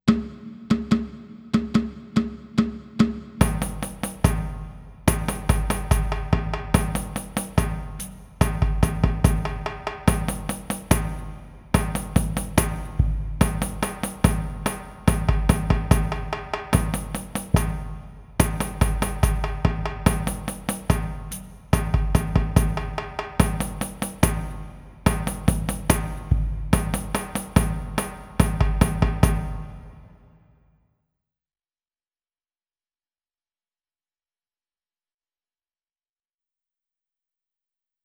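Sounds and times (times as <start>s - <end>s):
walking drum rhythm: 0.0s - 30.2s.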